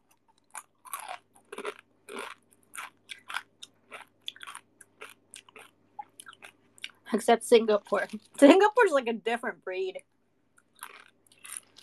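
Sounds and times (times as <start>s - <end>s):
person eating crunchy basreng fried snack: 0.0s - 7.0s, 10.6s - 11.8s
speech: 7.1s - 10.1s.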